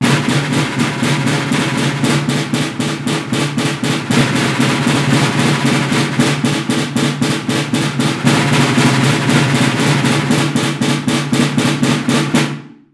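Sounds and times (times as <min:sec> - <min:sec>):
drum roll: 0:00.0 - 0:12.9.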